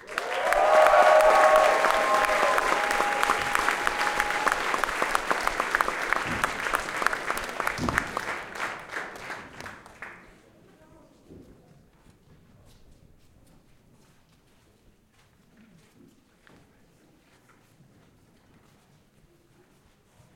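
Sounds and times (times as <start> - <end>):
audience applause welcoming a band at a local music fest: 0.0 - 10.3.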